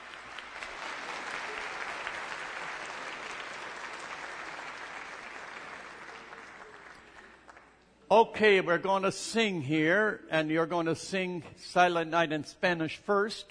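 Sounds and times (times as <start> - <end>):
audience applause: 0.0 - 7.8
speech: 8.1 - 13.4.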